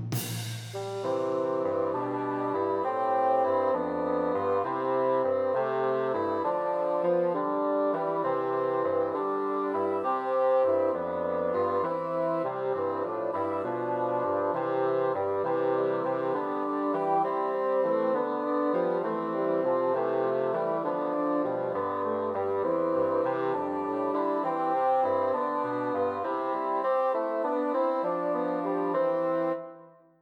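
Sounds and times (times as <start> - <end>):
Christmas bassoon trio: 0.1 - 29.9.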